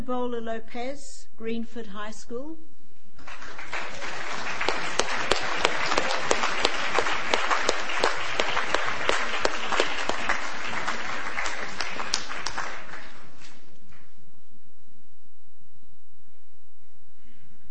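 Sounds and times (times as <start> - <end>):
speech: 0.1 - 3.7
room full of people applauding: 3.2 - 13.6.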